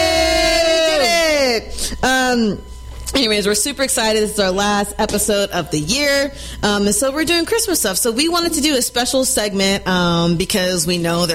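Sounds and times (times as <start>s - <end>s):
crowd cheering: 0.0s - 1.6s
live studio audience yelling on cue: 0.0s - 1.6s
speech: 2.0s - 11.3s.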